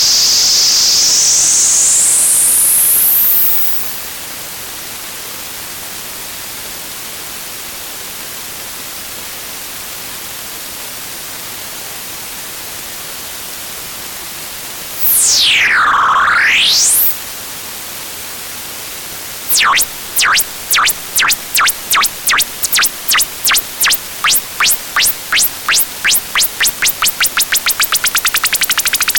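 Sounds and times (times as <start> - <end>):
noisebox synthesizer noise: 15.0 - 17.3, 19.5 - 29.1.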